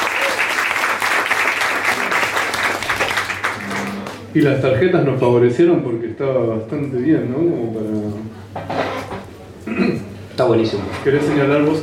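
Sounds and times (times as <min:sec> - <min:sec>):
applause: 0:00.0 - 0:04.3
speech: 0:04.4 - 0:08.8, 0:09.8 - 0:11.8.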